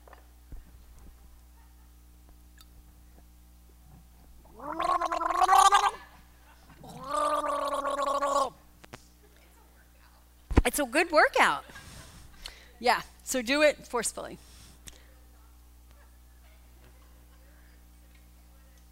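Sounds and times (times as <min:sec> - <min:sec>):
person gargling forcefully: 0:04.4 - 0:06.1, 0:06.8 - 0:08.6
speech: 0:10.8 - 0:11.7, 0:12.8 - 0:14.4.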